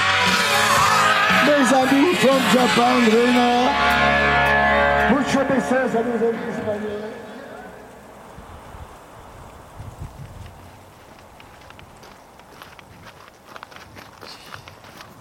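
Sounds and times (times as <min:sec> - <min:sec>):
broad wash of outdoor noise: 0:00.0 - 0:15.2
speech: 0:01.5 - 0:04.4, 0:05.1 - 0:07.3
footsteps of hikers walking a trail on a multi-day trek: 0:09.3 - 0:15.2.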